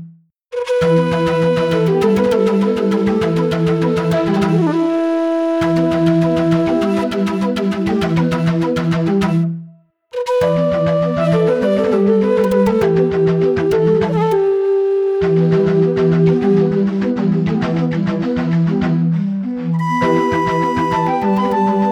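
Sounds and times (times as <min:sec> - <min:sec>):
flute: 0:00.5 - 0:18.1, 0:18.9 - 0:21.8.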